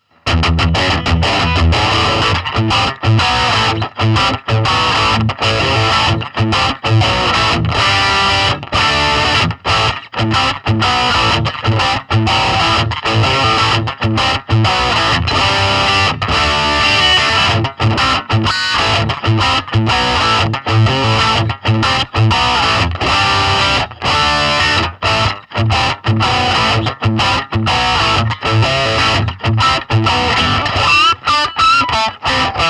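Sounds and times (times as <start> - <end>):
Red Channel lead guitar tone: 0.0 - 32.6.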